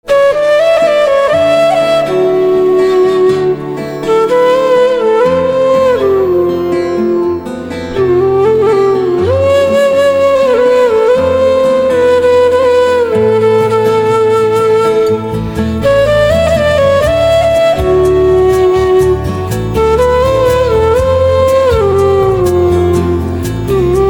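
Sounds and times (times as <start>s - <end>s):
flute: 0.0s - 24.0s.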